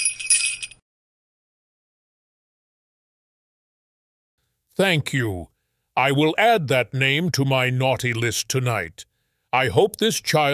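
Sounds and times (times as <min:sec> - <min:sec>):
sleigh bells jingling: 0:00.0 - 0:00.8
speech: 0:04.8 - 0:10.5.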